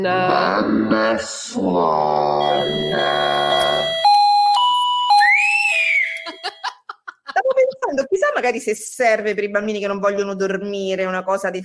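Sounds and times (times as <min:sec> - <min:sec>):
speech: 0:00.0 - 0:03.5, 0:08.4 - 0:11.6
podcast segment electronic theme jingle with synth notes: 0:02.4 - 0:06.7
laughter: 0:06.2 - 0:08.1.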